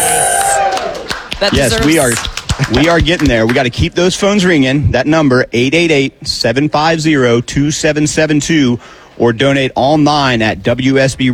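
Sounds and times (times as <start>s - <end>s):
people cheering and whooping in a radio fundraiser call center: 0.0s - 2.8s
speech: 1.4s - 11.3s.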